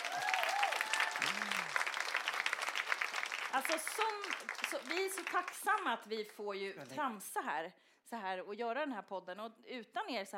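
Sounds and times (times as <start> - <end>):
audience clapping: 0.0 - 7.0
speech: 3.6 - 10.3.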